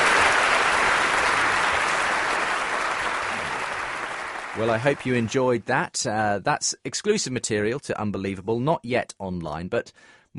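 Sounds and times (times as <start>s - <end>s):
audience round of applause: 0.0s - 5.5s
speech: 4.6s - 10.3s.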